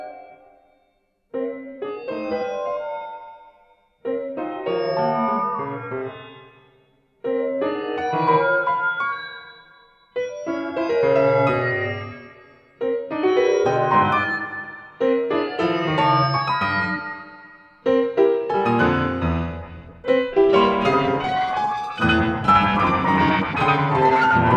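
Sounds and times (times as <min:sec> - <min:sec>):
computer piano: 0:00.0 - 0:24.5.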